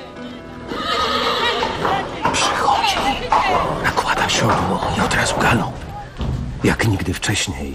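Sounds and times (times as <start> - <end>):
horse neighing while saddled at night in frost: 0.6 - 6.2
hoof clip-clops: 0.7 - 6.5
speech: 6.9 - 7.7.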